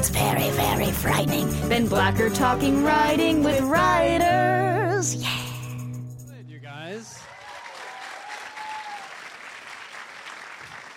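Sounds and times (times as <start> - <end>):
speech: 0.0 - 5.4
audience clapping: 7.2 - 10.9.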